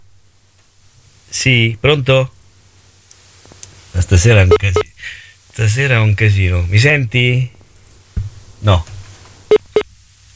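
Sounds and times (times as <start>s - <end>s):
faint low hum: 0.0s - 10.3s
speech: 1.3s - 2.4s, 4.0s - 7.6s, 8.6s - 8.9s
phone call disconnect tone beeps: 9.5s - 9.9s.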